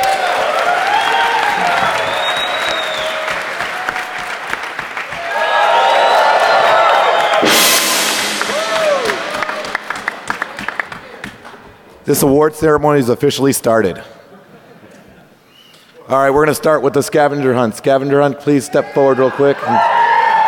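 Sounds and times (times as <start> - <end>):
whoops and shouting voices: 0.0 - 3.4, 5.2 - 7.5, 8.5 - 9.6, 19.2 - 20.4
crowd applause and cheering: 0.0 - 12.0, 19.6 - 20.4
speech: 12.1 - 14.2, 16.1 - 20.0.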